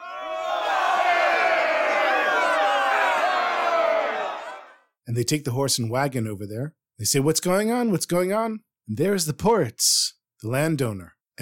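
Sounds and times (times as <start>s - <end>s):
people screaming: 0.0s - 4.8s
people shouting: 0.0s - 4.8s
speech: 5.1s - 11.4s.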